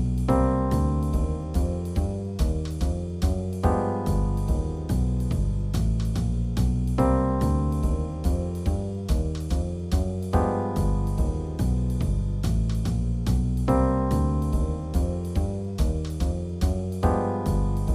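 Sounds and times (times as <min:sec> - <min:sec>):
bass: 0:00.0 - 0:17.9
boogie music: 0:00.0 - 0:17.9
drums: 0:00.0 - 0:17.9.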